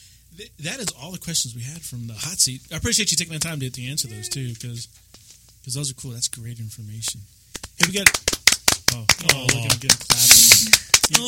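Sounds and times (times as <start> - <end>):
speech: 0.3 - 11.2
clapping: 7.6 - 11.2.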